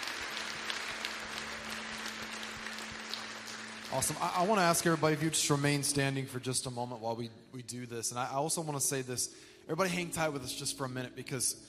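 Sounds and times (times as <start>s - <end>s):
church congregation applauding to welcome new members: 0.0s - 6.8s
speech: 3.9s - 11.6s.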